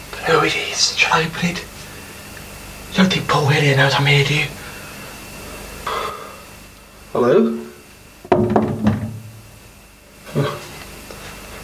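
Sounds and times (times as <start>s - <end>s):
speech: 0.3s - 1.8s, 2.9s - 4.6s, 7.2s - 7.6s
dull wooden knocks on a door: 8.3s - 9.4s.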